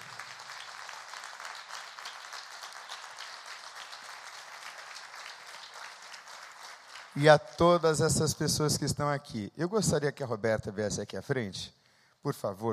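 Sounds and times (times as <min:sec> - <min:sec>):
audience applause: 0:00.0 - 0:08.1
speech: 0:07.2 - 0:12.7.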